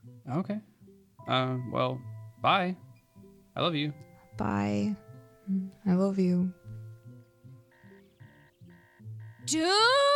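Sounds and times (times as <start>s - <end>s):
speech: 0.3s - 0.7s, 1.3s - 2.8s, 3.6s - 6.6s, 9.5s - 10.1s
phone alarm going off: 7.0s - 9.8s.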